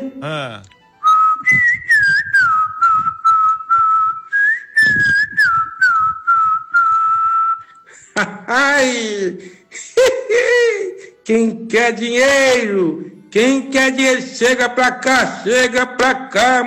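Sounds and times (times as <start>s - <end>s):
speech: 0.2s - 0.8s, 8.2s - 16.6s
person whistling imitation of rufous-bellied thrush song: 1.0s - 7.9s.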